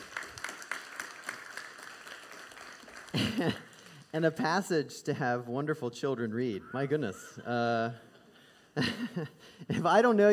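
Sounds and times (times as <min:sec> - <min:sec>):
audience applauding: 0:00.0 - 0:04.4
speech: 0:03.2 - 0:08.1, 0:08.8 - 0:10.3.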